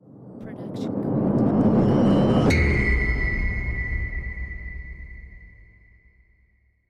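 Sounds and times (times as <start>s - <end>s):
cinematic rise and hit: 1.0s - 5.9s.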